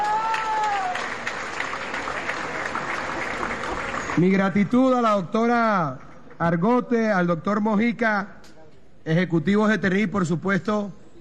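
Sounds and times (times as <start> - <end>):
audience applause: 0.0 - 4.7
speech: 4.2 - 8.4, 9.0 - 11.0.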